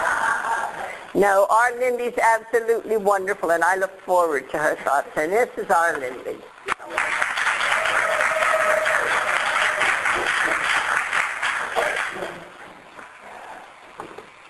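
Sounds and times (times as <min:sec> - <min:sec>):
speech: 0:01.2 - 0:07.0
crowd applauding: 0:06.8 - 0:12.6.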